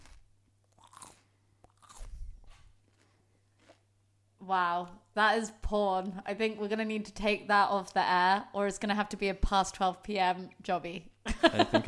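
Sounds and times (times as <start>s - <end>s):
someone biting into and chewing crisp celery: 0.0s - 3.8s
speech: 4.5s - 11.8s
laughter: 11.3s - 11.8s.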